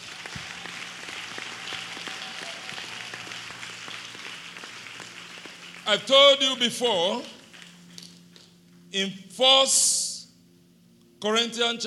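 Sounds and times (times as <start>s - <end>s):
crowd clapping: 0.0s - 8.8s
speech: 5.9s - 7.4s, 8.9s - 10.0s, 11.2s - 11.8s.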